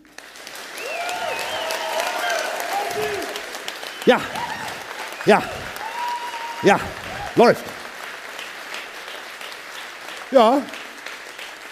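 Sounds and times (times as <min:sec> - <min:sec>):
audience applause: 0:00.0 - 0:11.7
speech: 0:04.0 - 0:04.5, 0:05.2 - 0:05.7, 0:06.6 - 0:07.8, 0:10.3 - 0:10.8.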